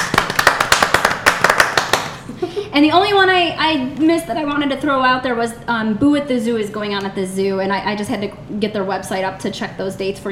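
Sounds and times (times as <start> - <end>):
golf clap: 0.0 - 2.2
speech: 2.8 - 10.3.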